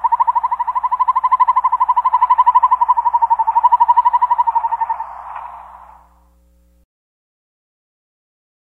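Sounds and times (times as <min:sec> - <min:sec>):
Northern Hawk Owl calling: 0:00.0 - 0:06.2.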